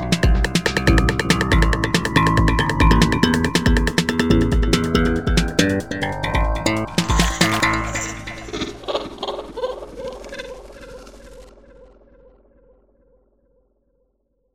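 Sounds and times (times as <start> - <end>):
electro music: 0.0 - 11.4.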